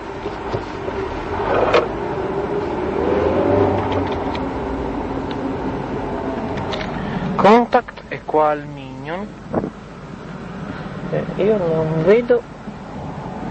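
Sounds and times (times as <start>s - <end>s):
car engine accelerating in a video game: 0.1s - 7.6s
speech: 8.4s - 9.5s, 11.4s - 12.6s.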